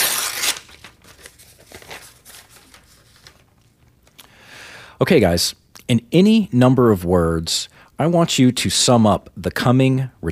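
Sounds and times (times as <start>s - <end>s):
envelope torn open: 0.0s - 3.4s
paper crinkling and rustling: 0.0s - 3.8s
speech: 5.0s - 10.3s.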